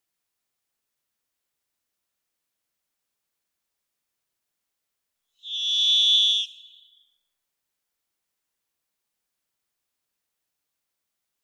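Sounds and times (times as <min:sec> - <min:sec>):
varied thrush whistled tone: 0:05.4 - 0:07.3.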